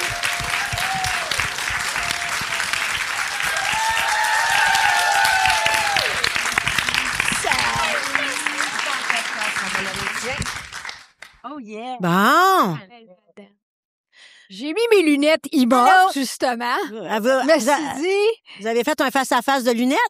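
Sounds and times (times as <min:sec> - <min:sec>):
people whooping and cheering: 0:00.0 - 0:09.2
audience applause: 0:00.0 - 0:11.3
speech: 0:14.6 - 0:20.0.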